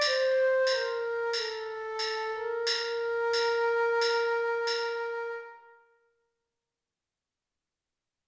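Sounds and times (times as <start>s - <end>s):
flute: 0.0s - 6.1s.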